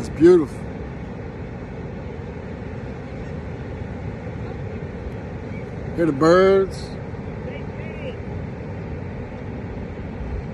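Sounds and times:
ocean waves at the beach: 0.0 - 10.5
speech: 0.2 - 0.6, 6.0 - 7.0.

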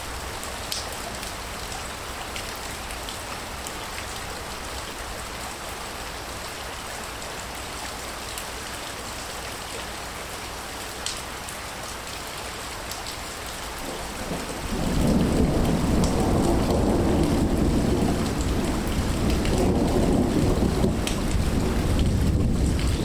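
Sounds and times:
tropical rain in a forest in Mexico: 0.0 - 23.0.

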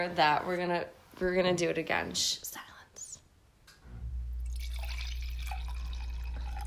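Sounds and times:
speech: 0.0 - 2.7
wine pouring into a glass: 4.4 - 6.6.

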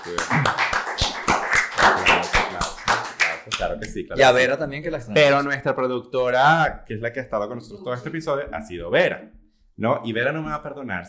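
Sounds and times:
speech: 0.0 - 0.7, 3.9 - 11.0
hand clapping: 0.0 - 4.1.

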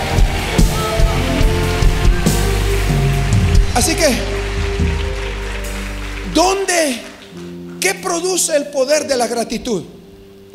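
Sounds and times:
loud applause from audience: 0.0 - 8.1
speech: 3.8 - 4.4, 6.4 - 7.1, 7.8 - 10.5.

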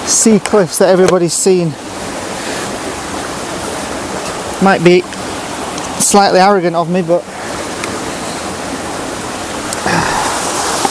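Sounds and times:
small waterfall: 0.0 - 10.9
speech: 0.1 - 2.1, 4.6 - 5.2, 6.1 - 7.4.

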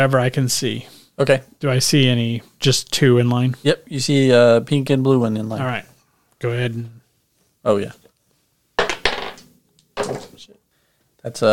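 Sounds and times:
speech: 0.0 - 7.0, 7.6 - 8.0, 11.2 - 11.5
dice rolling and bouncing out of box: 8.8 - 10.4.

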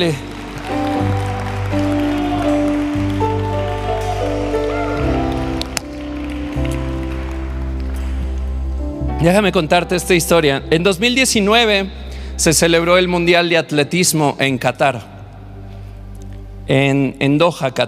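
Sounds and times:
speech: 0.0 - 0.3, 9.2 - 15.1, 16.7 - 17.8
audience applauding: 0.0 - 8.8.

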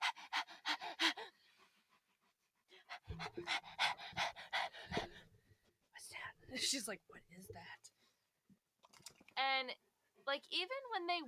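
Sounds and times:
dog panting heavily: 0.0 - 6.0
speech: 6.6 - 7.9, 9.4 - 11.2.

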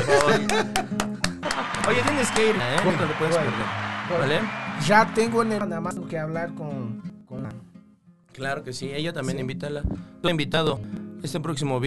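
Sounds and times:
people talking and laughing: 0.0 - 5.8
brief applause from a few people: 0.0 - 5.9
speech: 0.2 - 1.0, 1.8 - 7.1, 8.4 - 11.8.

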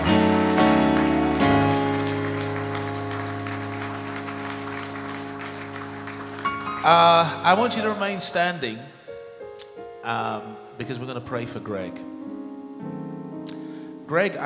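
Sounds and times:
crowd applause: 0.0 - 8.1
sustained organ-like music: 0.0 - 14.4
speech: 6.9 - 8.9, 10.0 - 12.1, 14.1 - 14.4.

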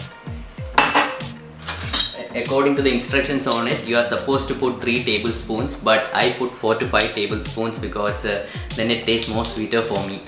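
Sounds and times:
drinking glass set down and moved: 0.7 - 1.3
drinking glass being handled: 0.7 - 2.2, 3.5 - 4.3, 9.1 - 9.7
speech: 2.3 - 10.2.

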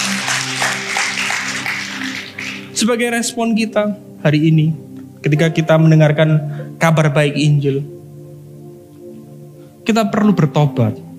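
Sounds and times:
audience applause: 0.0 - 2.8
sustained low musical tone humming: 2.6 - 11.1
speech: 2.8 - 8.0, 9.9 - 11.0.

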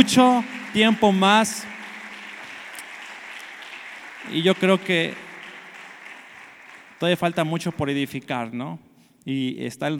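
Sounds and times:
speech: 0.0 - 1.7, 4.3 - 5.2, 7.0 - 9.9
audience applauding: 0.0 - 8.0.

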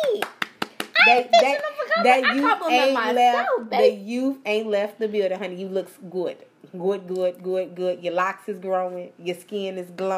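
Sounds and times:
audience clapping in unison: 0.0 - 1.0
speech: 1.1 - 10.1.

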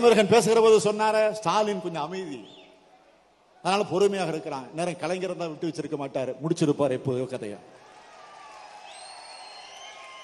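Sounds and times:
speech: 0.0 - 2.6, 3.6 - 7.8
crowd clapping: 7.8 - 10.2.

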